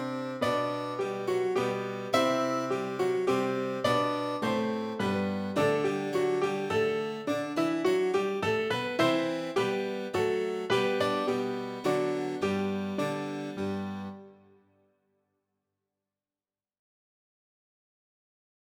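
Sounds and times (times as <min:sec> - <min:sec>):
instrumental minuet in G major: 0:00.0 - 0:14.6.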